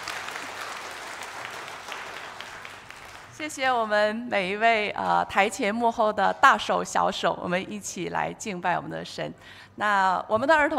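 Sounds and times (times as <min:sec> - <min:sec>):
warm applause from audience: 0:00.0 - 0:03.4
speech: 0:03.4 - 0:10.7.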